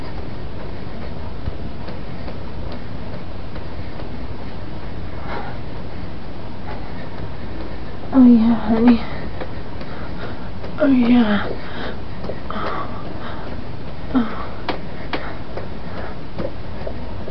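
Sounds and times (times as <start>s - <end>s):
person speaking vocal tag: 8.1s - 9.5s, 10.2s - 13.3s
silly lo-fi orgasm moaning: 14.1s - 14.6s.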